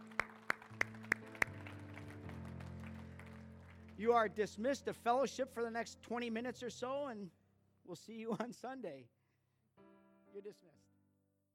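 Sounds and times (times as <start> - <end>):
congregation clapping: 0.0 - 4.8
speech: 4.0 - 9.2, 10.4 - 10.9.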